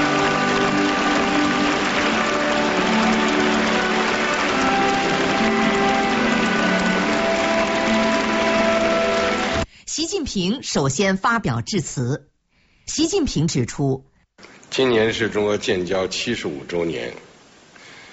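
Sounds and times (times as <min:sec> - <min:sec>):
large crowd applause: 0:00.0 - 0:09.6
speech: 0:10.4 - 0:12.3, 0:12.9 - 0:17.2.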